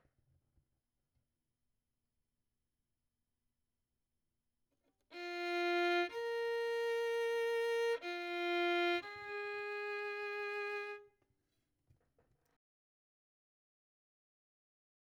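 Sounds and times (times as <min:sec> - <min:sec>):
violin: 0:05.1 - 0:11.1.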